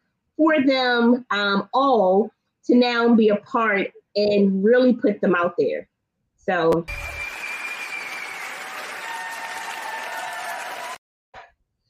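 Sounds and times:
speech: 0.4s - 7.1s
audience applause: 6.9s - 11.0s.

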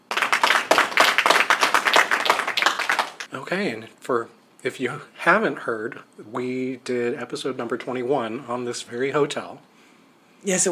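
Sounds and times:
audience applause: 0.0s - 3.3s
speech: 3.3s - 9.7s, 10.4s - 10.7s.

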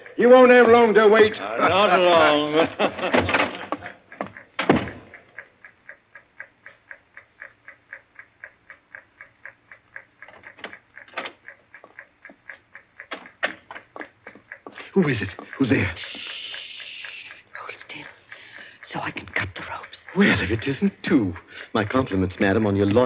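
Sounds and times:
laughter: 0.0s - 4.6s, 13.7s - 17.4s, 20.1s - 23.0s
ticking time fuse of a bomb in a radio drama: 0.0s - 23.0s
speech: 0.2s - 3.6s, 15.0s - 16.3s, 20.2s - 23.0s
louder knocks: 4.6s - 5.0s.

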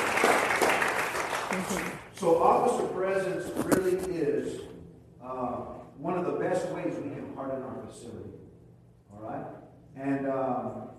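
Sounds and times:
audience applause: 0.0s - 2.1s
speech: 1.6s - 8.4s, 9.1s - 10.9s.

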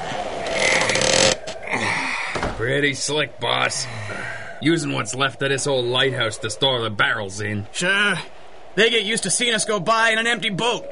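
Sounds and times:
heavy doors dragged open with a grinding creak: 0.3s - 2.8s
speech: 2.6s - 10.8s.

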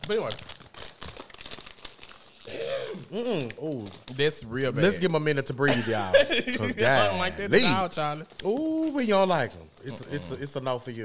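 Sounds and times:
potato chips crunching: 0.0s - 5.0s, 7.7s - 10.6s
speech: 0.1s - 0.6s, 2.5s - 11.0s
laughter: 5.6s - 7.8s.

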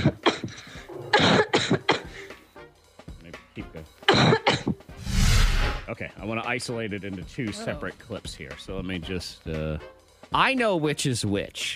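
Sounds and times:
person coughing harshly: 0.0s - 2.3s, 4.1s - 4.8s
speech: 6.0s - 11.7s.

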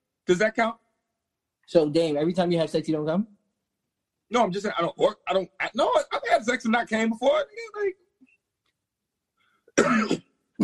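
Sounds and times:
speech: 0.3s - 0.8s, 1.7s - 3.4s, 4.3s - 8.0s, 9.8s - 10.6s
person choking and coughing: 9.8s - 10.6s.

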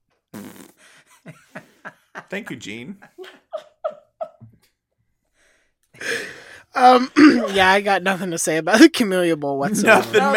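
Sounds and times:
fart sound effect from a soundboard: 0.3s - 0.8s
laughter: 1.1s - 4.6s, 9.6s - 10.3s
speech: 1.2s - 1.5s, 2.3s - 3.2s, 6.8s - 10.3s.

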